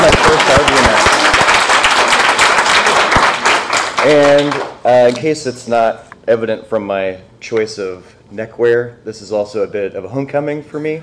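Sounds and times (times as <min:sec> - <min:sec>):
audience applause at an RBMS conference session: 0:00.0 - 0:04.8
speech: 0:04.1 - 0:11.0.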